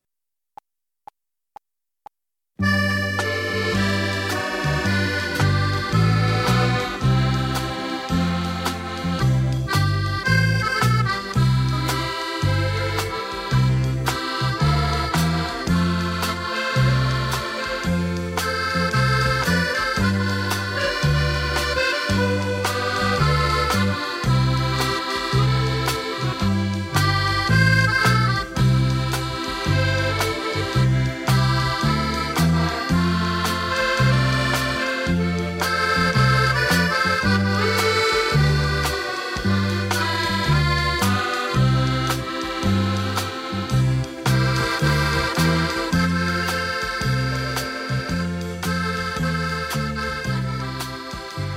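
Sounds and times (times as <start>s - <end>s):
accordion medley: 2.6s - 51.5s.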